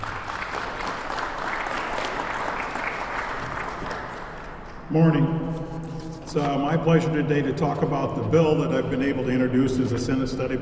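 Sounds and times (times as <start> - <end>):
audience applause: 0.0 - 4.7
speech: 4.9 - 5.5, 6.3 - 10.6.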